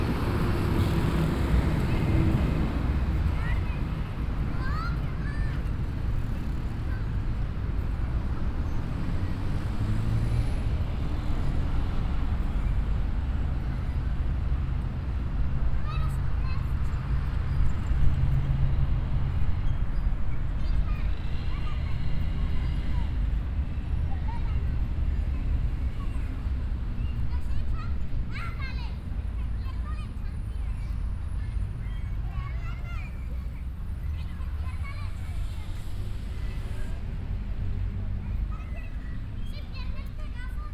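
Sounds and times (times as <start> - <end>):
urban ambience in Tintal Bogota: 0.0 - 40.7.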